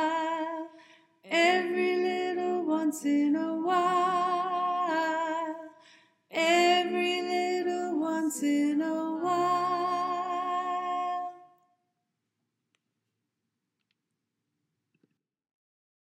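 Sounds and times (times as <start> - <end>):
soprano singing: 0.0 - 11.6.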